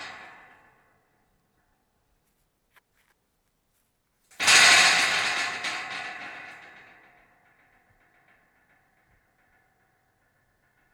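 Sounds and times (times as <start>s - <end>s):
metal scrap rattling: 4.4s - 10.9s.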